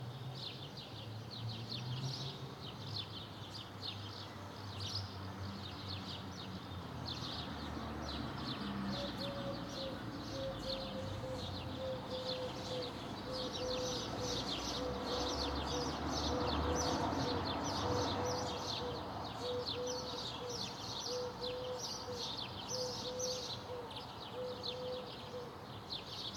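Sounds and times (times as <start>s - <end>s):
birds in a residential area in the afternoon: 0.4s - 26.3s
distant traffic in a residential area: 6.8s - 25.6s.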